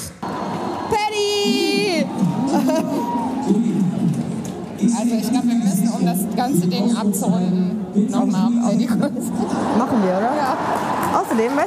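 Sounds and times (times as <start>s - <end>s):
hubbub of overlapping voices: 0.0s - 11.6s
women shrieking: 0.9s - 3.5s
laughter: 2.1s - 3.8s, 8.8s - 11.1s
speech: 4.8s - 11.6s.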